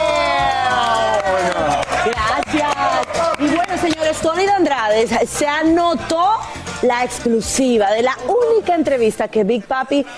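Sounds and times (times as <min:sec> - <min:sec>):
crowd cheering: 0:00.0 - 0:04.2
speech: 0:03.8 - 0:10.1.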